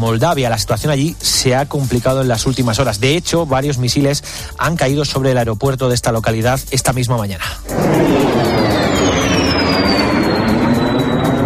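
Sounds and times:
speech: 0.0 - 8.4
Russian military jet aircraft passing overhead: 7.6 - 11.4.

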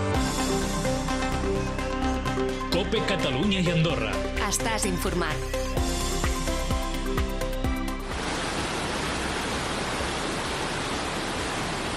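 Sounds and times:
brief rhythmic musical passage: 0.2 - 8.1
speech: 2.8 - 5.6
floodwater rushing down a mountainside: 8.1 - 11.9.

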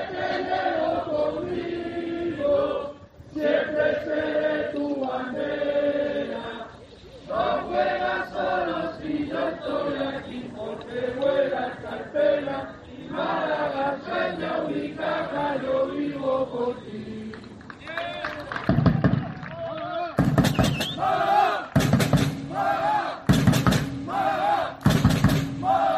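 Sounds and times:
sports fans chanting: 0.0 - 17.6, 20.1 - 25.9
crowd roaring and cheering: 17.8 - 25.9.

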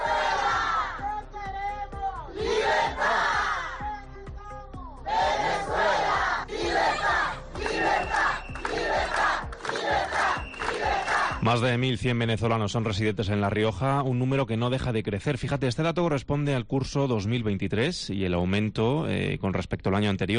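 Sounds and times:
rally crowd shouting freedom in the Plaza del Espolón: 0.0 - 3.9, 5.1 - 11.4
speech: 11.5 - 20.3.

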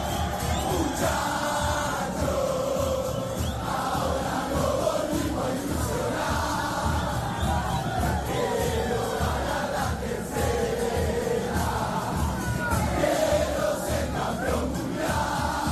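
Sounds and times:
crowd roaring and cheering in the streets of Buenos Aires during a football occasion: 0.0 - 15.7.

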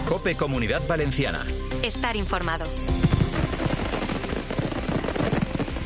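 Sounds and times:
speech: 0.1 - 3.2
fireworks bursting: 2.9 - 5.8.

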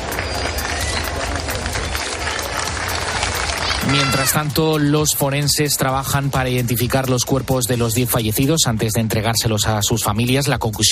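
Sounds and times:
neighbours applauding: 0.0 - 7.8
speech: 3.9 - 10.9.

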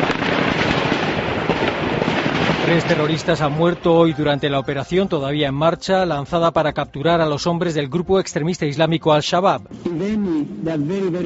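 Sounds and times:
intermittent gunfire: 0.0 - 3.8
speech: 2.7 - 11.2.

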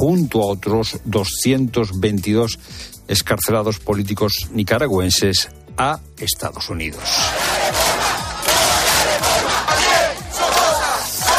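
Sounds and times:
speech: 0.0 - 7.8
Nicaraguan street protest crowd shouting and chanting in 2018: 7.0 - 11.3.

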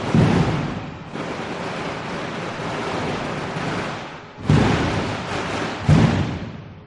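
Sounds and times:
heavy firecracker booms: 0.0 - 1.2, 4.4 - 6.8
traca firecracker string going off: 0.0 - 6.8.

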